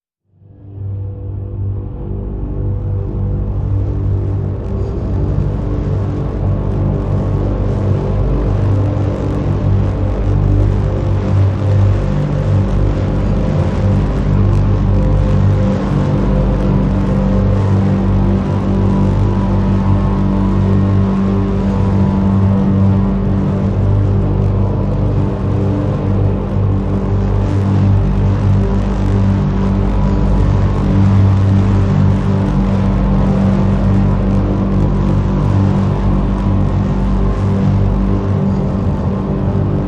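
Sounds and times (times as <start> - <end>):
drone in G: 0.3 - 39.8.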